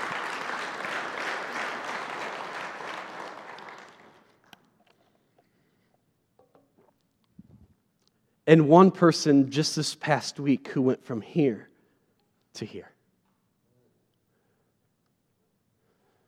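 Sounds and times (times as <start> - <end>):
crowd applause: 0.0 - 4.6
speech: 8.5 - 11.7, 12.6 - 12.9.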